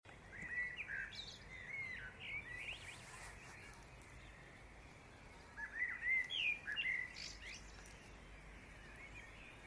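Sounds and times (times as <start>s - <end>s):
bird chorus chirping: 0.1s - 9.6s
soft low hiss: 0.1s - 9.6s.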